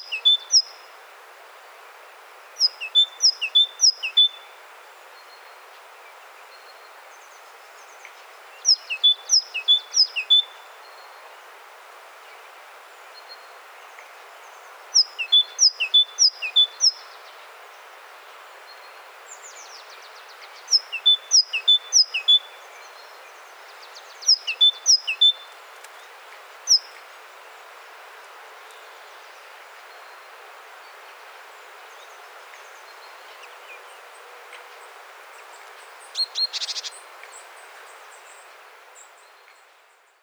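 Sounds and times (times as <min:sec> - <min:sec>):
great tit song: 0:00.0 - 0:00.7, 0:02.6 - 0:04.4, 0:08.7 - 0:10.5, 0:15.0 - 0:17.0, 0:20.7 - 0:22.5, 0:24.3 - 0:25.4.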